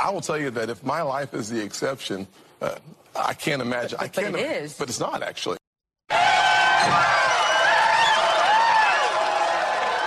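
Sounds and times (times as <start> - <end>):
speech: 0.0 - 5.6
audience cheering: 6.1 - 10.0.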